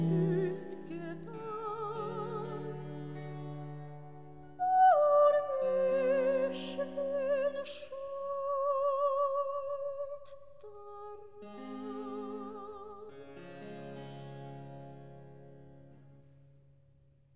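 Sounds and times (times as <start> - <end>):
recitative singing: 0.0 - 3.2, 4.4 - 13.2.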